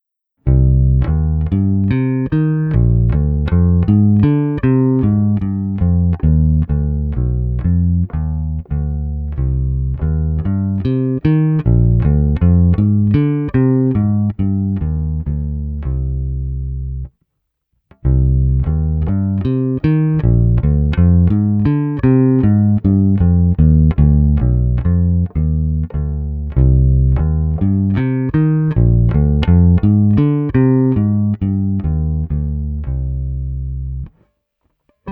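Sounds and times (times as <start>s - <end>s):
solo bass guitar pieces: 0.4s - 17.1s, 17.9s - 34.3s, 34.9s - 35.1s.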